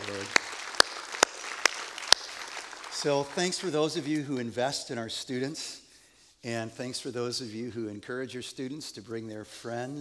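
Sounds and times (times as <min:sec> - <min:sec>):
sharp claps: 0:00.0 - 0:04.2
faint steady noise: 0:00.0 - 0:10.0
speech: 0:03.0 - 0:05.8, 0:06.4 - 0:10.0.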